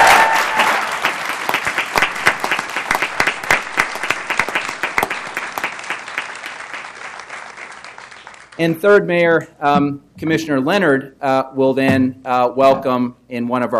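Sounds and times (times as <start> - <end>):
crowd round of applause: 0.0 - 8.6
speech: 8.6 - 13.7.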